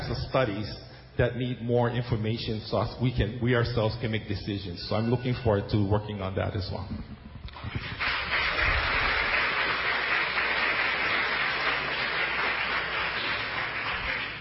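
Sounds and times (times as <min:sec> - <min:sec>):
speech: 0:00.1 - 0:07.2
audience applause: 0:07.6 - 0:14.3.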